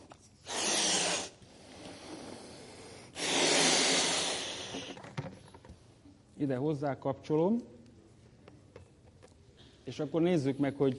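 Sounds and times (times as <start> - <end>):
balloon being inflated by mouth: 0.0 - 5.2
speech: 6.4 - 7.8, 9.9 - 10.9.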